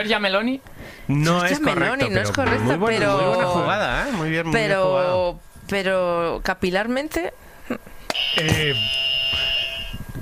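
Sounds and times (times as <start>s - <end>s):
speech: 0.0s - 9.1s
game show buzzer on a Spanish quiz: 8.1s - 10.0s.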